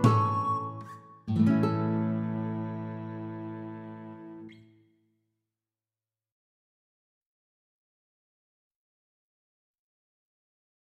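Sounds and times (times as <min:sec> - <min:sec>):
backing track: 0:00.0 - 0:00.8, 0:01.4 - 0:04.5.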